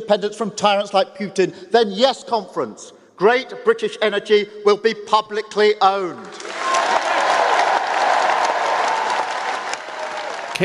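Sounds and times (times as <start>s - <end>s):
speech: 0.1s - 6.6s
Labour Party conference audience standing ovation: 6.2s - 10.6s.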